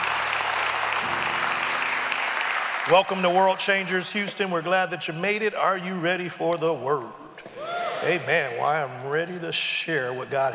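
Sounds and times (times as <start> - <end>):
audience hand clapping applause: 0.0 - 4.4
speech: 2.9 - 7.2, 8.0 - 10.5.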